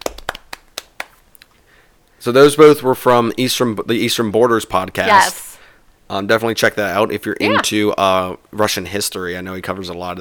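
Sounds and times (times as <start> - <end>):
hand clap: 0.0 - 1.5
speech: 2.2 - 5.5, 6.1 - 10.1.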